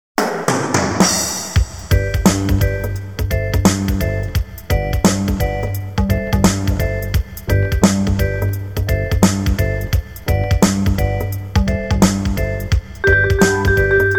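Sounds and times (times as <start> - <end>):
contemporary reggae music: 0.2 - 14.1.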